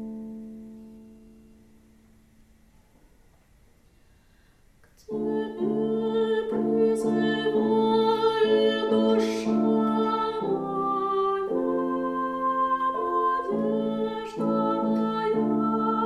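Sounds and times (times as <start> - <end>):
tenor singing: 4.9 - 16.0.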